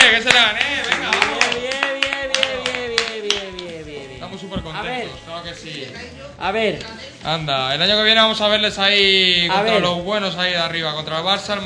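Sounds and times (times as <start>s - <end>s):
studio audience clapping: 0.0s - 4.1s
speech: 5.5s - 11.6s.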